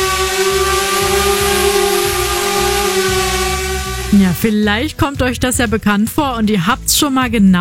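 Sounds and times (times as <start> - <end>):
drone buzzing loudly overhead: 0.0 - 4.6
speech: 4.4 - 7.5.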